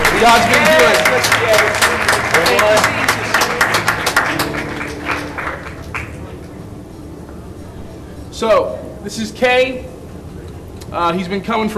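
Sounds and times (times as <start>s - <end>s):
crowd clapping: 0.0s - 6.6s
speech: 0.2s - 3.2s, 8.4s - 9.9s, 10.9s - 11.7s.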